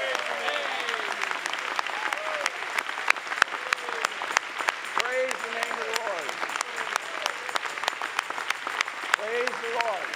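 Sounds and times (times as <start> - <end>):
voices calling out: 0.0 - 8.0
church congregation applause: 0.0 - 10.1.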